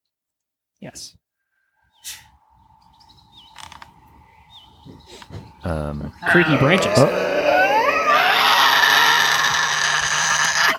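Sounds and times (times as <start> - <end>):
speech: 0.8 - 1.2, 5.6 - 7.3
Tasmanian devil scream: 5.6 - 10.7.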